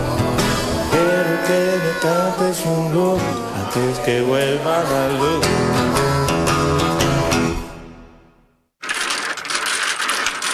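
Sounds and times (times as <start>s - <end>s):
music: 0.0s - 8.5s
speech: 1.5s - 6.2s
domino tiles being shuffled on a table: 8.8s - 10.5s.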